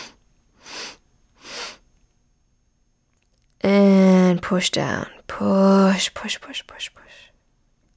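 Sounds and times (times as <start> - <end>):
short sniffing inhales through the nose: 0.0 - 1.8
speech: 4.5 - 7.3.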